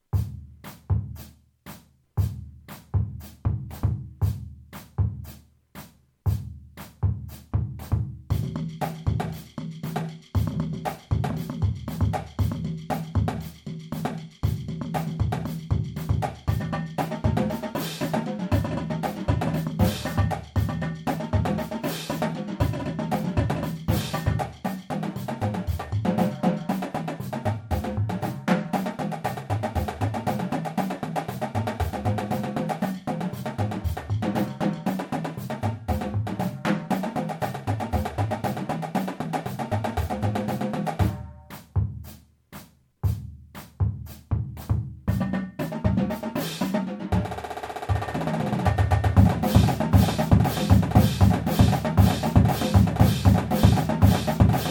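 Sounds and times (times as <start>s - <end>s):
groove music: 0.2s - 54.6s.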